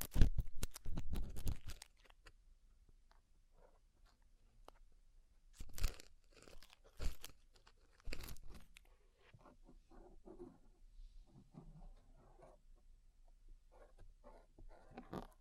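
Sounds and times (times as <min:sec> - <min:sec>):
deep ear cleaning crackling and scraping: 0:00.0 - 0:02.3, 0:05.6 - 0:08.9
crinkling and tapping: 0:00.0 - 0:04.9, 0:05.5 - 0:10.7, 0:13.8 - 0:15.3.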